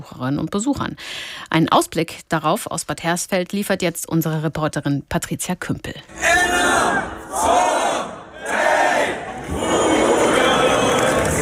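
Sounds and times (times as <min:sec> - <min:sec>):
speech: 0:00.0 - 0:07.6
festival crowd cheering at Lullusfest in Bad Hersfeld: 0:06.4 - 0:11.4.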